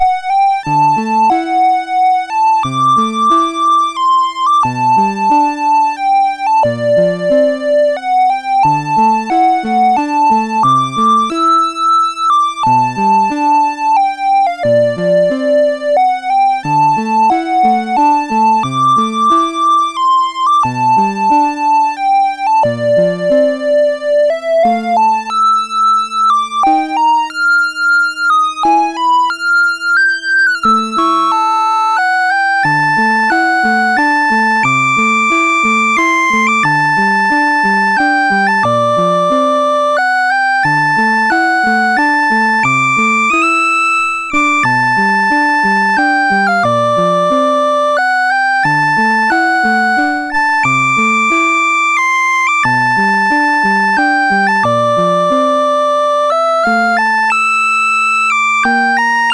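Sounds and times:
chiptune theme music on MOS6581 chip: 0:00.0 - 0:59.3.

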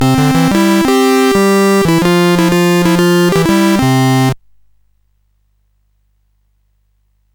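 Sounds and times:
SID CSG8580R5 chip music: 0:00.0 - 0:04.4.

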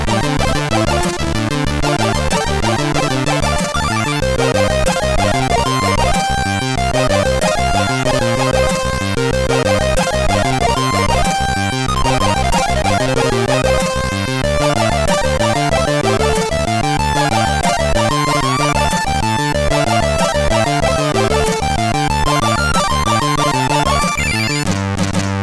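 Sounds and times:
MOS6581R3 sound chip music: 0:00.0 - 0:25.2.

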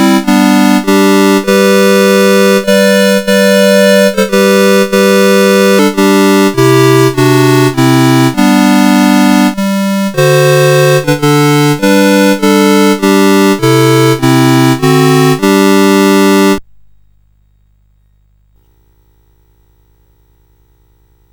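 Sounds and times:
chiptune carol on CSG8580R5 sound chip: 0:00.0 - 0:16.6.

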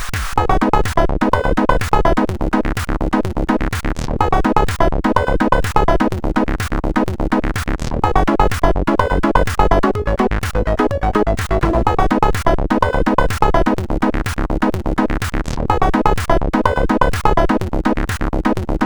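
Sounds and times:
SID CSG8580 chiptune synthesizer: 0:00.2 - 0:18.8.

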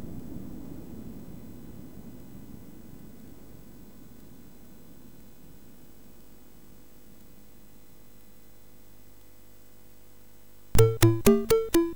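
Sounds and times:
MOS6581R4 SID chip synth bassline: 0:10.8 - 0:11.9.

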